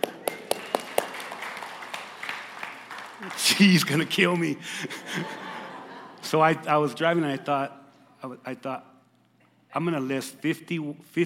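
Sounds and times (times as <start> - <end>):
audience applause: 0.0 - 4.1
speech: 3.2 - 5.4, 6.2 - 8.9, 9.7 - 11.2
laughter: 4.6 - 7.7.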